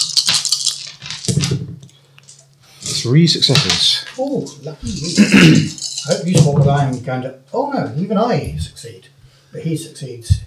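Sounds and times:
dice rolling: 0.0 - 2.4, 4.9 - 6.2
speech: 3.0 - 10.4.

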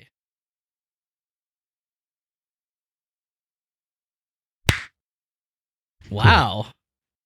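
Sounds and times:
hand clap for recording sync: 4.7 - 5.0
speech: 6.1 - 6.8.

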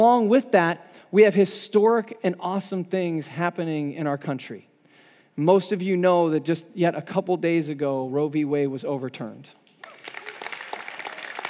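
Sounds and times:
speech: 0.0 - 4.7, 5.4 - 9.6
audience applause: 9.8 - 11.4.

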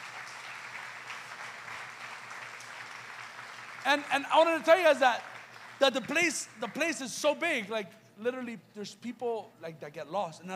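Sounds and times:
audience applause: 0.0 - 6.8
speech: 3.9 - 10.5.

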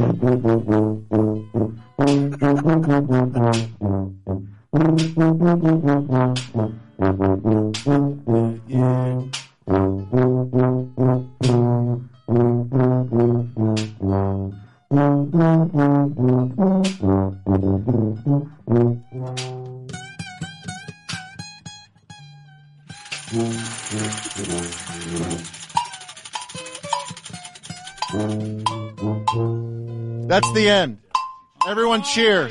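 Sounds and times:
speech: 0.0 - 1.3, 2.1 - 3.8, 4.7 - 10.6, 30.6 - 30.9, 32.0 - 32.4
tuba solo: 0.0 - 19.9, 23.2 - 25.5, 28.2 - 30.3
laughter: 2.1 - 3.6, 31.8 - 32.4.

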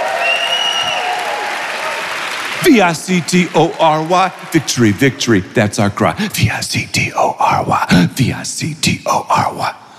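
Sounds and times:
crowd clapping: 0.0 - 5.9
speech: 2.6 - 9.8.

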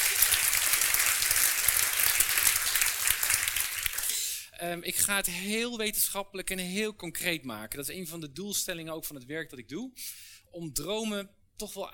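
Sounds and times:
audience applause: 0.0 - 4.2
speech: 4.6 - 11.9.

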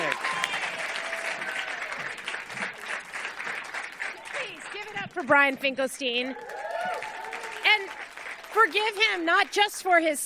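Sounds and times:
scattered cheers and whoops: 0.0 - 2.2, 6.2 - 8.6
crowd clapping: 0.0 - 10.2
speech: 5.2 - 7.0, 8.6 - 10.2.

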